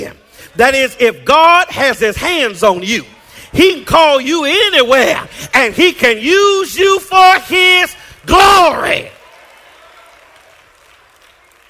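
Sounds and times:
speech: 0:00.0 - 0:09.2
audience clapping: 0:08.1 - 0:11.6.

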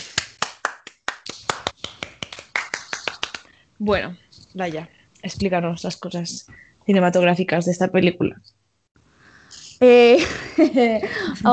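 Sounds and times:
hand clapping: 0:00.0 - 0:03.5
speech: 0:03.8 - 0:08.6, 0:09.8 - 0:11.5
laughter: 0:10.2 - 0:11.5.

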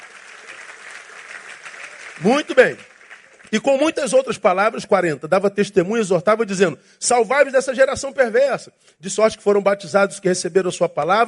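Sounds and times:
audience applause: 0:00.0 - 0:03.9
speech: 0:02.2 - 0:02.9, 0:03.5 - 0:11.2.

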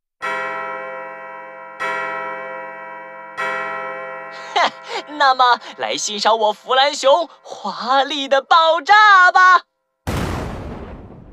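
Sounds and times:
New Year clock bell chiming in a forest: 0:00.2 - 0:09.0
speech: 0:04.4 - 0:09.7.

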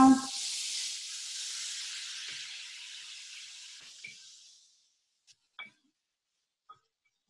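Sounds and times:
veggie broth sizzling on daikon pieces in a very hot skillet: 0:00.0 - 0:05.3
faint clicks and taps: 0:06.6 - 0:07.2.

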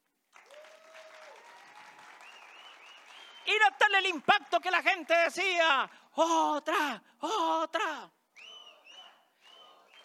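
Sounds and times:
large crowd applauding thunderously: 0:00.0 - 0:06.0, 0:08.9 - 0:10.0
shrill whistles: 0:02.2 - 0:03.6, 0:08.3 - 0:10.0
speech: 0:03.5 - 0:08.2.

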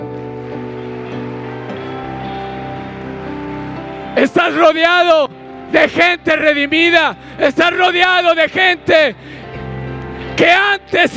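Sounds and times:
audience applauding: 0:00.0 - 0:05.0
speech: 0:04.2 - 0:09.4, 0:10.4 - 0:11.1.

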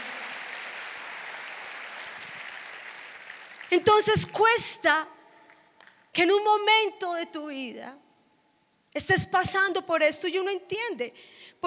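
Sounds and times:
audience applauding: 0:00.0 - 0:03.8
speech: 0:03.7 - 0:05.2, 0:06.2 - 0:08.0, 0:09.0 - 0:11.6.

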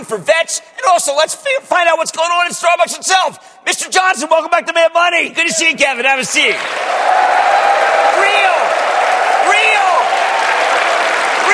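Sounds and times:
speech: 0:00.0 - 0:07.6
people cheering: 0:06.4 - 0:11.5.

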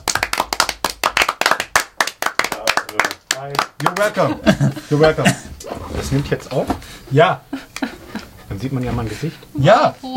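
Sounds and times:
applause of many hands clapping: 0:00.0 - 0:04.3
speech: 0:02.9 - 0:07.6, 0:08.6 - 0:10.1
laughter: 0:04.0 - 0:05.6, 0:07.5 - 0:08.4.

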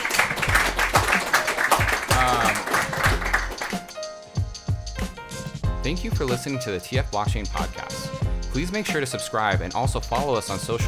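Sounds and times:
audience applause: 0:00.0 - 0:03.9
speech: 0:05.9 - 0:10.8.

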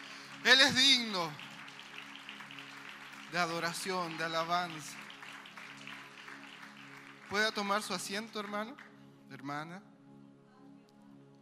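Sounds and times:
audience applause: 0:00.0 - 0:08.9
speech: 0:00.5 - 0:01.5, 0:03.3 - 0:05.1, 0:07.3 - 0:09.9.

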